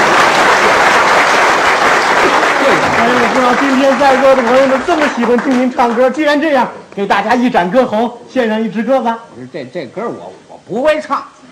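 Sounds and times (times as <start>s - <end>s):
audience applause: 0.0s - 6.2s
speech: 3.4s - 11.4s.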